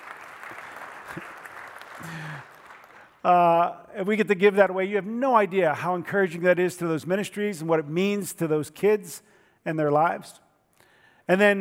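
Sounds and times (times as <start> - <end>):
audience clapping: 0.0 - 3.3
speech: 3.2 - 10.4, 11.3 - 11.5.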